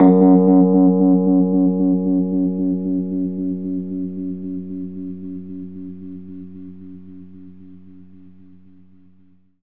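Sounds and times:
Rhodes electric piano in F sharp: 0.0 - 6.9.

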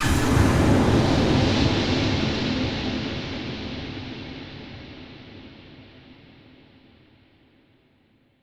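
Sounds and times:
huge long reverb tail: 0.0 - 3.5.

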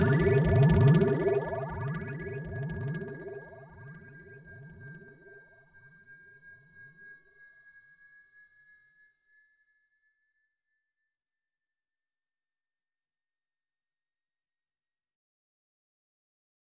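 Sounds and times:
percussion sounds with delay: 0.0 - 5.3.

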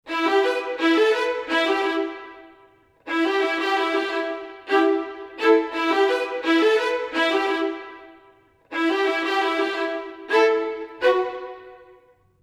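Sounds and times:
orchestral violins in E minor: 0.0 - 12.4.

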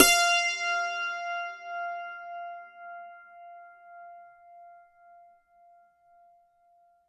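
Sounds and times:
dulcimer beat in F: 0.0 - 1.3.

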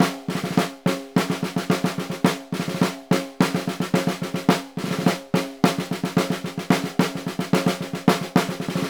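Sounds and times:
Synclavier snare drum: 0.0 - 8.8.

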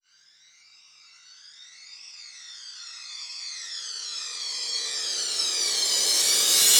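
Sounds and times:
reverse cymbal: 4.5 - 6.7.

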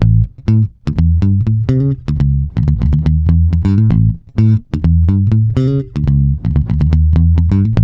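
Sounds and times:
boogaloo bass line at 124 BPM: 0.0 - 7.8.

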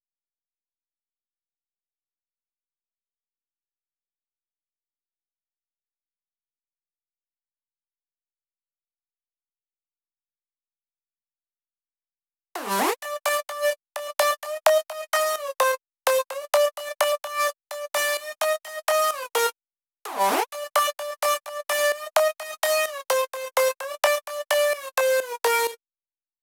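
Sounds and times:
dry synth lead in G at 128 BPM: 12.6 - 19.5, 20.1 - 25.8.

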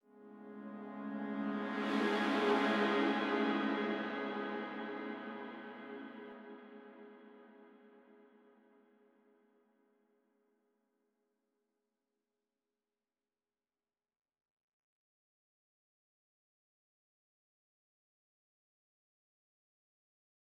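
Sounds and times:
synth pad in G: 0.1 - 7.6.

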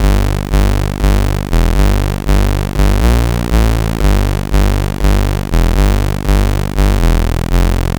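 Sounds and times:
Commodore 64 chiptune bass: 0.0 - 7.9.

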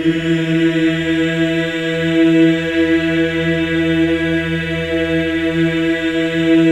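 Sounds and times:
men's voices singing E4: 0.0 - 6.6.

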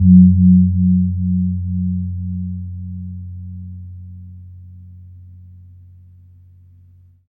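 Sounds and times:
kempur gong tuned to F3: 0.0 - 5.0.

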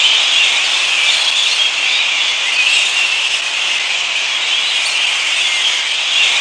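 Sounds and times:
fruit bats calling: 0.0 - 6.3.

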